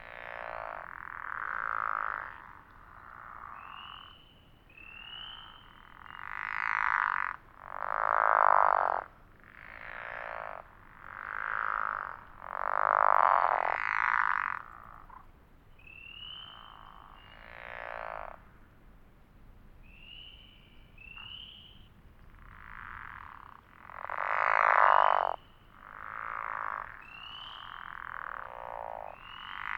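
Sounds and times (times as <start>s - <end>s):
pickerel frogs calling in snore-like croaks: 0.0s - 18.7s, 19.8s - 29.7s.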